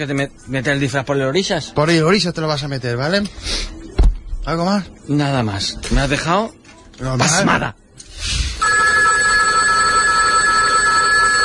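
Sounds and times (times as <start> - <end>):
speech: 0.0 - 3.8, 4.4 - 7.8
telephone ringing with a steady high electronic tone: 8.6 - 11.4.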